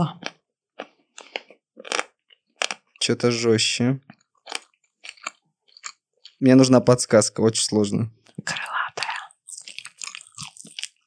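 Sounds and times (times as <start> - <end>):
speech: 0.0 - 0.2, 3.1 - 4.2, 6.4 - 8.7
crunchy chewing of chicken wings: 0.2 - 2.9, 4.1 - 6.4, 9.4 - 11.0.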